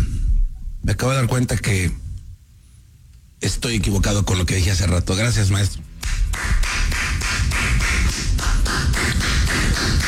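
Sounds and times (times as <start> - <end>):
speech: 0.9 - 2.0, 3.4 - 5.9
hands clapping: 6.0 - 10.0.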